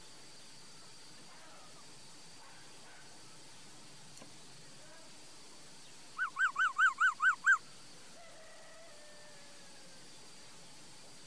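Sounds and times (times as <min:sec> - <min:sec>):
quiet background hiss: 0:00.0 - 0:11.2
laughingthrush singing: 0:06.2 - 0:07.6.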